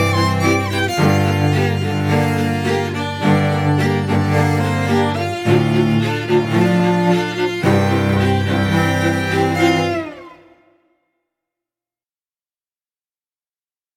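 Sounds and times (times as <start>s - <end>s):
string quartet: 0.0s - 10.8s.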